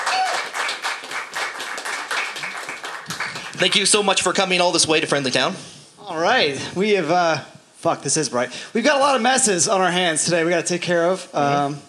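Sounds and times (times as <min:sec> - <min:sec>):
audience clapping to welcome a guest to the stage: 0:00.0 - 0:04.4
speech: 0:03.6 - 0:11.8.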